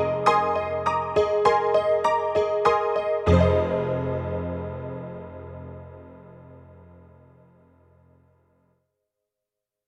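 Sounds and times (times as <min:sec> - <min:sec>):
Yamaha MU90 synthesized honky-tonk piano: 0:00.0 - 0:06.5.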